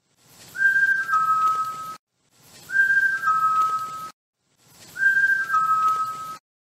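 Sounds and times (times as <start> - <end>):
whistle: 0.5 - 2.0, 2.6 - 4.2, 4.9 - 6.4.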